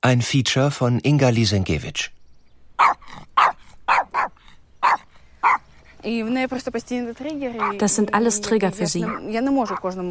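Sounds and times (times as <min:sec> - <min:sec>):
speech: 0:00.0 - 0:02.2, 0:06.0 - 0:10.0
dog barking: 0:02.8 - 0:05.7, 0:07.6 - 0:07.8, 0:09.0 - 0:10.0.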